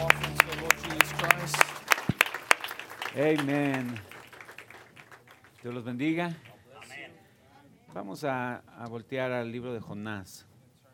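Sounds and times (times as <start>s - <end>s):
audience clapping: 0.0s - 6.6s
speech: 3.2s - 4.1s, 5.6s - 6.5s, 7.9s - 10.5s.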